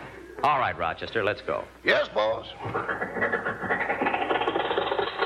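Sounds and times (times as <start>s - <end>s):
speech: 0.4s - 3.7s
old car engine running: 2.8s - 5.2s.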